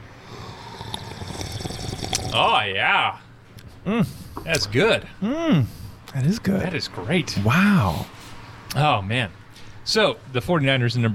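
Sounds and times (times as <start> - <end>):
people slurping hot coffee: 0.2 - 2.4
speech: 2.3 - 3.2, 3.8 - 11.1.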